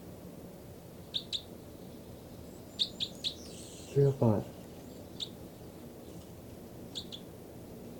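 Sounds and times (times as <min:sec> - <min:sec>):
soft hiss: 0:00.0 - 0:07.9
birds chirping and chittering: 0:01.0 - 0:06.3, 0:06.9 - 0:07.8
speech: 0:04.0 - 0:04.6.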